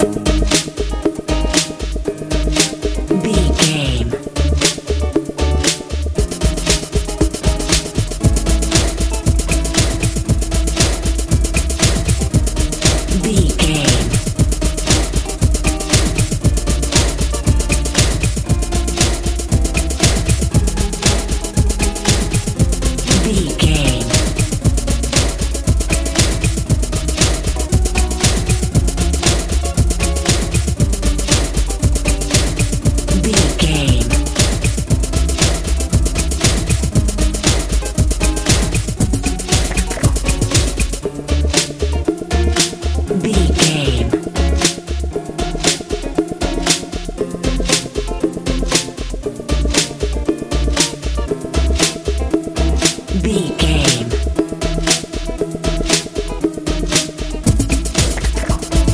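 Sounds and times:
techno music: 0.0 - 58.9.

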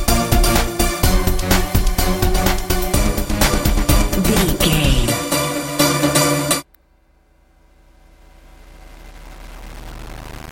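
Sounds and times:
euro dance music: 0.0 - 6.6.

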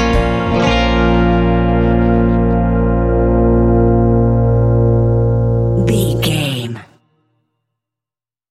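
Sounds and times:
country rock music: 0.0 - 5.8.

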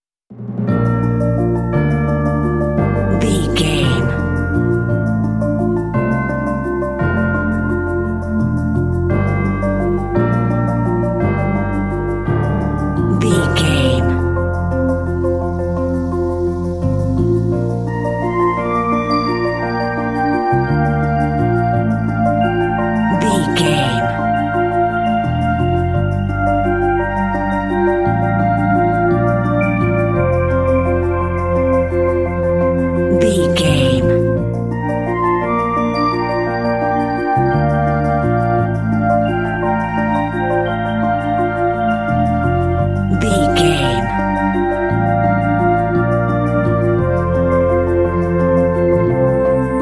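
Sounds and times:
town music: 0.4 - 37.3, 38.0 - 49.8.

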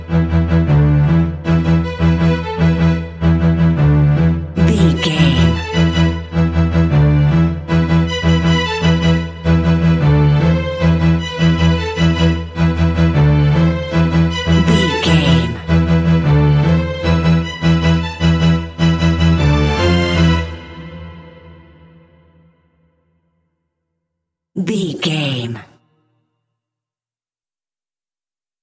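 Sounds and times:
suspenseful orchestral strings: 0.0 - 22.4.

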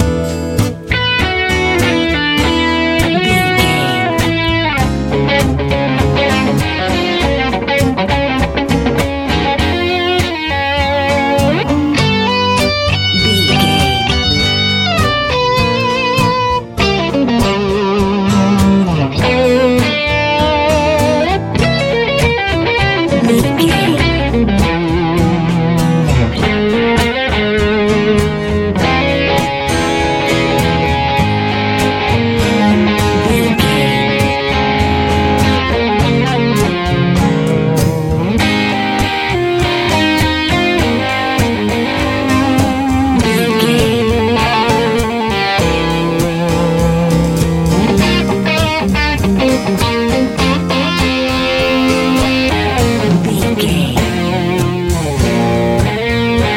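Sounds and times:
easy listening music: 0.0 - 56.5.

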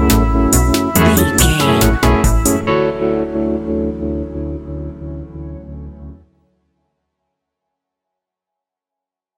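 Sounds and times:
relaxed chill background music: 0.0 - 6.4.

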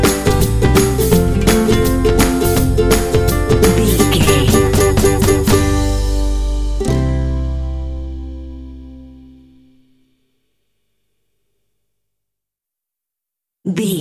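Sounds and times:
upbeat ukulele music full mix: 0.0 - 8.7.

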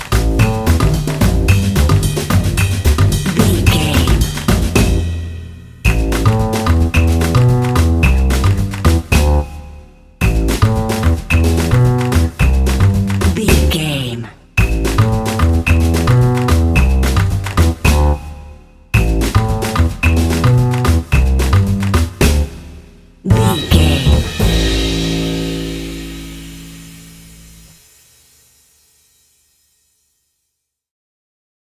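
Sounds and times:
playful jazzy dramedy music: 0.0 - 5.2, 5.9 - 9.5, 10.2 - 13.7, 14.6 - 18.3, 19.0 - 22.6, 23.3 - 26.8.

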